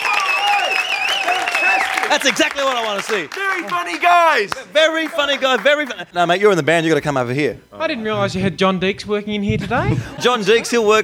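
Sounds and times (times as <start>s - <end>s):
audience applause: 0.0s - 6.0s
speech: 2.1s - 11.0s
laughter: 7.8s - 11.0s.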